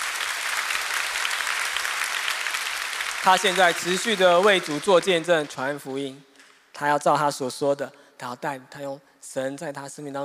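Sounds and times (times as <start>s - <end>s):
audience applause: 0.0s - 5.8s
speech: 3.2s - 10.2s.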